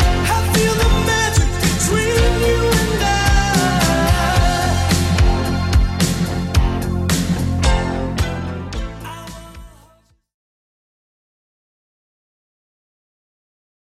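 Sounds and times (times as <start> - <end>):
1980s style music: 0.0 - 10.1.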